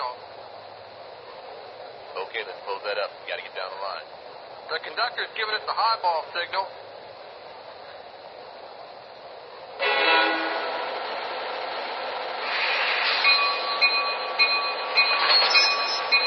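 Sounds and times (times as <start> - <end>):
F59PHI train: 0.0 - 16.2.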